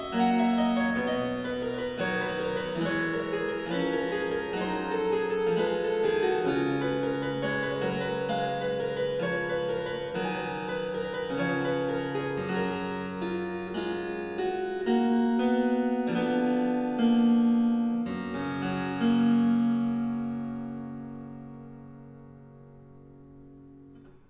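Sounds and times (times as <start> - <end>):
harpsichord: 0.0 - 22.4.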